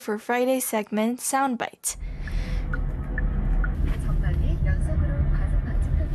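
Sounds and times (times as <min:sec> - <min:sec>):
speech: 0:00.0 - 0:02.1
car interior while driving: 0:02.0 - 0:06.1.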